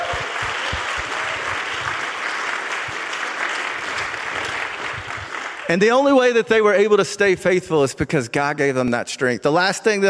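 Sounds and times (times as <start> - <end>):
audience applause: 0.0 - 6.1
speech: 5.7 - 10.0.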